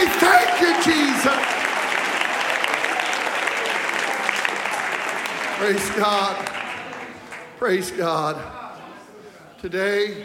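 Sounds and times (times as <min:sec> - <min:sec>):
audience clapping hands: 0:00.0 - 0:08.0
speech: 0:05.6 - 0:06.6, 0:07.6 - 0:08.6, 0:09.6 - 0:10.2.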